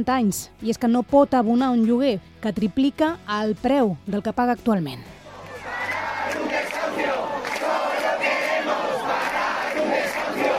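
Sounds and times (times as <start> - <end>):
speech: 0.0 - 5.2
protest crowd chanting and shouting outside eviction: 5.1 - 10.5.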